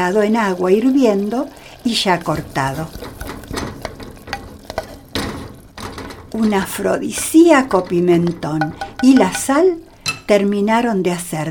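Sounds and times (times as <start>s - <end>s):
speech: 0.0s - 3.2s, 6.3s - 11.4s
onions and bell peppers sizzling in a frying pan in a kitchen: 0.0s - 9.9s
utensil clicks and scrapes: 2.6s - 5.3s.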